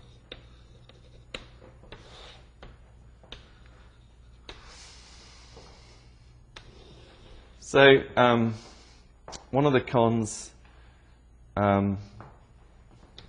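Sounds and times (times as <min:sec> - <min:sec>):
faint scratching of writing pros and cons: 0:00.0 - 0:05.5, 0:06.6 - 0:07.6
quiet steady hum: 0:00.0 - 0:13.2
speech: 0:07.7 - 0:08.7, 0:09.5 - 0:10.5, 0:11.6 - 0:12.1.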